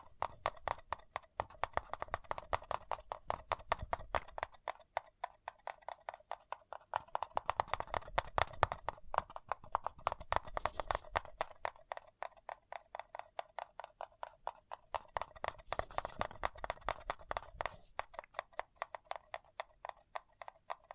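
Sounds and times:
fingertips tapping and scratching on a paper cup: 0.0 - 20.9.

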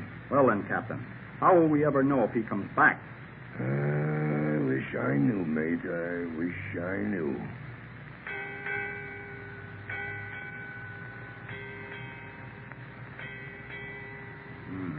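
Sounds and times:
speech: 0.3 - 4.0, 4.8 - 7.7
ship's bell striking eight bells: 8.3 - 14.7.

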